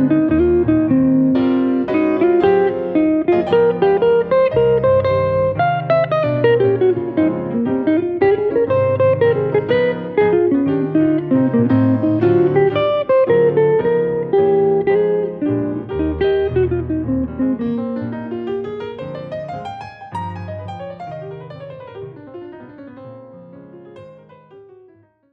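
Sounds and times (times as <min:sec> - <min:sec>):
winter waltz music: 0:00.0 - 0:17.6.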